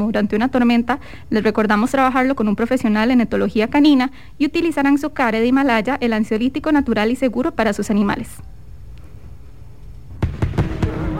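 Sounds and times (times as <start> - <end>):
speech: 0.0 - 8.5
fireworks exploding: 10.1 - 11.1.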